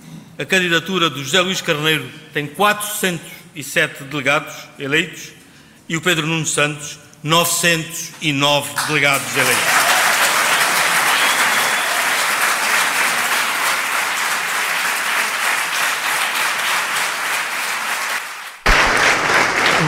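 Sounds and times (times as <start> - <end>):
speech: 0.4 - 9.9
strong applause: 8.8 - 19.8.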